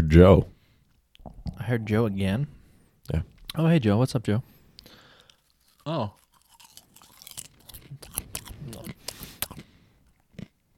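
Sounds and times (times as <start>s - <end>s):
speech: 0.0s - 0.5s, 1.5s - 4.5s, 5.8s - 6.2s
people chewing popcorn: 5.1s - 10.6s.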